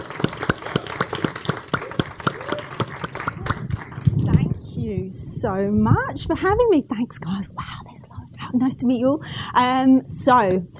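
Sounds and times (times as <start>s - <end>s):
audience applause: 0.0s - 4.6s
speech: 5.0s - 7.9s, 8.5s - 10.7s.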